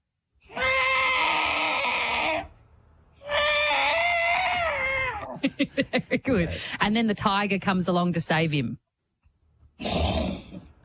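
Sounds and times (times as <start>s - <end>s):
voice imitating a distressed elephant trumpeting: 0.5s - 2.6s, 3.2s - 5.4s
speech: 5.4s - 8.9s.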